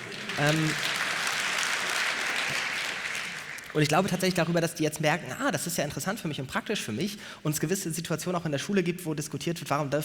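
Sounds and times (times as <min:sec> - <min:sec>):
applause: 0:00.0 - 0:04.5
speech: 0:00.4 - 0:00.9, 0:03.7 - 0:10.0.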